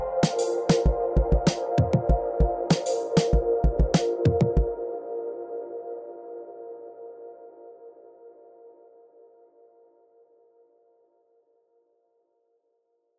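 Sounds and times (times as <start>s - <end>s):
ambient music: 0.0s - 9.6s.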